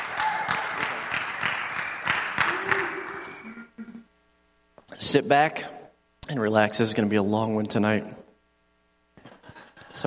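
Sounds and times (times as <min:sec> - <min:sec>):
audience applause: 0:00.0 - 0:03.5
speech: 0:05.0 - 0:05.7, 0:06.3 - 0:08.2.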